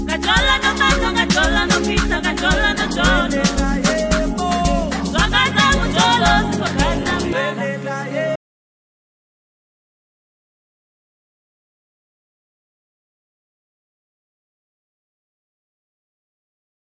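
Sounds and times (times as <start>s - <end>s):
choir singing: 0.1s - 8.4s.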